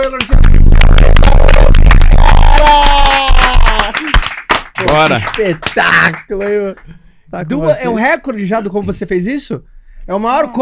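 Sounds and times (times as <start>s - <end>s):
speech: 0.0s - 0.5s, 5.0s - 10.6s
crowd applause: 0.0s - 6.4s
cheering and whooping: 0.8s - 4.2s.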